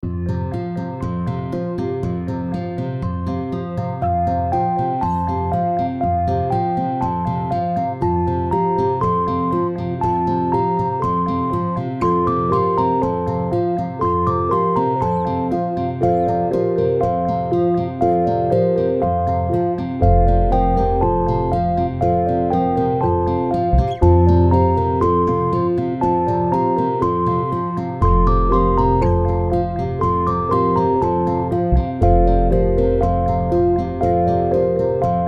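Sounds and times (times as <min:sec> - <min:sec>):
music: 0:00.0 - 0:35.2.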